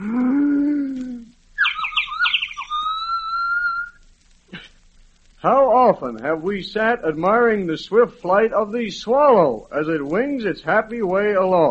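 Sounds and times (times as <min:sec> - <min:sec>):
loon call echoing across a lake at eventide: 0:01.6 - 0:04.0
speech: 0:05.4 - 0:11.6.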